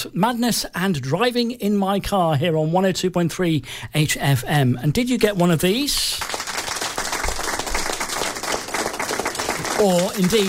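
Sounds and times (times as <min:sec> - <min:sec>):
speech: 0:00.0 - 0:06.4, 0:09.8 - 0:10.4
round of applause: 0:06.1 - 0:10.4.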